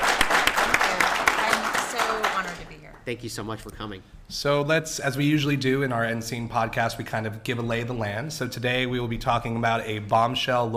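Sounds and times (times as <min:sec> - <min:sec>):
crowd round of applause: 0:00.0 - 0:02.8
speech: 0:03.1 - 0:10.7.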